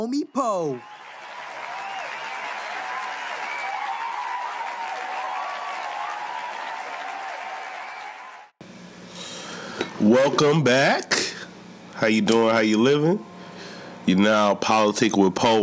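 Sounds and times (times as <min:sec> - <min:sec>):
speech: 0:00.0 - 0:01.0, 0:10.0 - 0:11.1, 0:12.0 - 0:13.3, 0:14.1 - 0:15.6
audience applause: 0:00.7 - 0:08.5.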